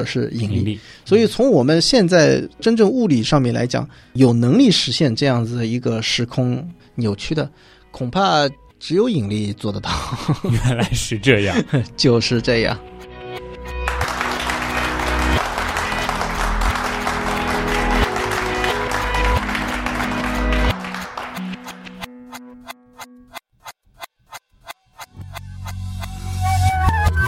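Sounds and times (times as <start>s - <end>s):
speech: 0.0s - 13.0s
laughter: 9.9s - 11.9s
applause: 13.8s - 22.1s
sharp rhythmic clicks: 20.7s - 26.2s.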